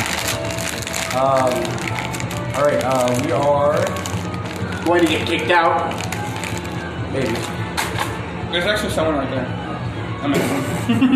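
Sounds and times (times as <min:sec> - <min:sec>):
bag of Skittles rustling against the mic: 0:00.0 - 0:08.1
speech: 0:01.2 - 0:04.1, 0:04.8 - 0:06.1, 0:07.1 - 0:07.6, 0:08.5 - 0:09.6, 0:10.2 - 0:11.1.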